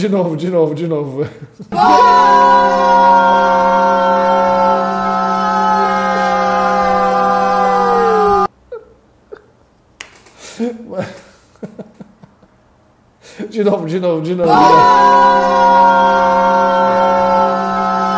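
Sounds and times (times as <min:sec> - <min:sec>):
speech: 0:00.0 - 0:05.0, 0:13.5 - 0:17.1
many people shouting goal at once: 0:01.7 - 0:08.5, 0:14.4 - 0:18.1.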